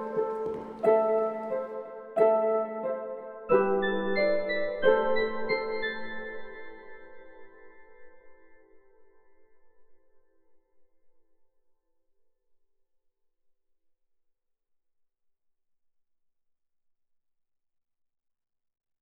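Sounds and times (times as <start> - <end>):
medieval forest fantasy music: 0.0 - 7.9.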